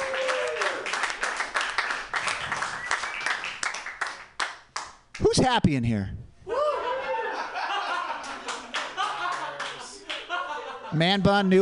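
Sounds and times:
audience applause: 0.0s - 4.5s, 8.2s - 10.4s
speech: 5.3s - 6.2s, 10.9s - 11.6s
laughter: 6.6s - 11.3s.

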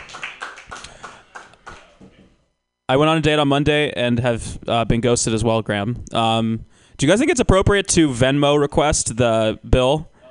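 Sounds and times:
audience clapping: 0.0s - 2.2s
speech: 2.9s - 10.1s.

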